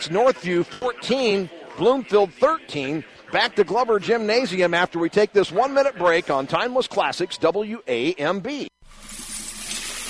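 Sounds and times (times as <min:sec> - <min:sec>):
speech: 0:00.0 - 0:09.1
coins pouring out in a radio ad sound effect: 0:08.9 - 0:10.0.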